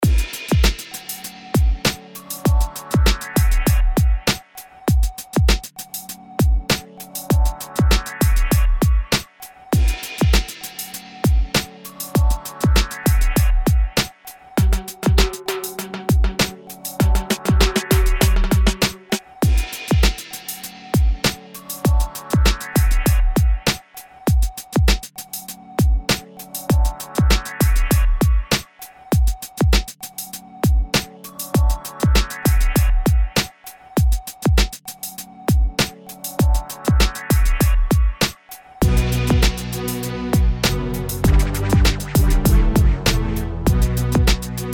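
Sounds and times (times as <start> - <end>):
hip hop beat: 0.0 - 44.7.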